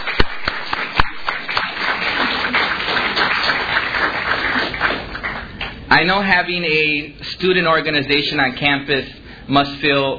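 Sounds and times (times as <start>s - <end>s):
audience applause: 0.0s - 5.7s
speech: 6.0s - 10.1s.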